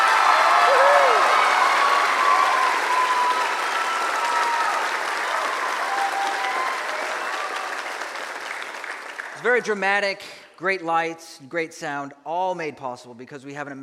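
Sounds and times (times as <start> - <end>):
faint voices and cheers: 0.0 - 8.4
audience applause for a choir: 0.0 - 9.7
speech: 9.6 - 13.8.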